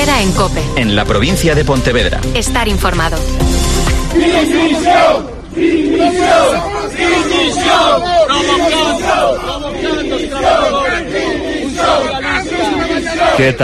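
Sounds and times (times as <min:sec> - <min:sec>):
speech: 0:00.1 - 0:03.6, 0:04.2 - 0:12.1, 0:13.2 - 0:13.6
protesting transport workers shouting and chanting: 0:03.9 - 0:13.6.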